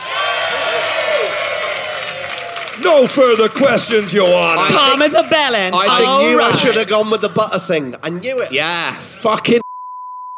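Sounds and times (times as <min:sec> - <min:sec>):
audience applause: 0:00.0 - 0:07.3
speech: 0:02.8 - 0:09.7.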